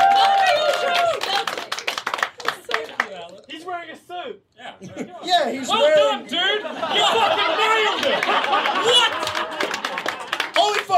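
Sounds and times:
hand claps between speakers on a show: 0.0 - 3.5, 8.0 - 10.9
speech: 4.3 - 9.2
laughter: 4.8 - 10.8.

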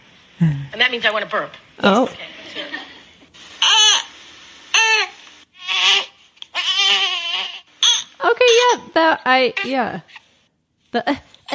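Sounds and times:
speech: 0.4 - 2.8, 9.0 - 10.2, 10.9 - 11.5
baby fussing cry: 3.6 - 4.1, 4.7 - 7.7.

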